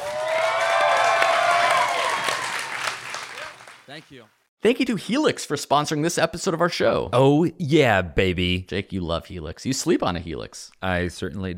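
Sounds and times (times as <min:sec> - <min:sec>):
audience applause: 0:00.0 - 0:04.2
speech: 0:04.0 - 0:11.5.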